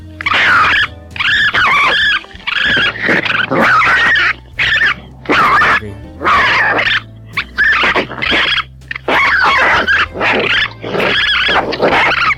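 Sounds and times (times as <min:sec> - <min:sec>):
raccoons fighting: 0:00.0 - 0:12.3.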